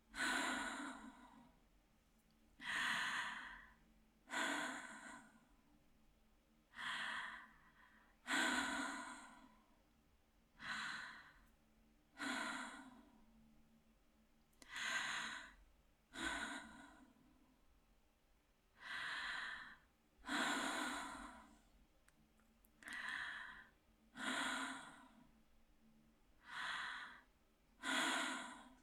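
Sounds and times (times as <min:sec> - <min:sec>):
out of breath woman breathing slowly: 0:00.1 - 0:01.6, 0:02.6 - 0:05.5, 0:06.7 - 0:09.7, 0:10.6 - 0:11.5, 0:12.1 - 0:13.2, 0:14.6 - 0:17.3, 0:18.8 - 0:21.7, 0:22.8 - 0:25.3, 0:26.4 - 0:28.8.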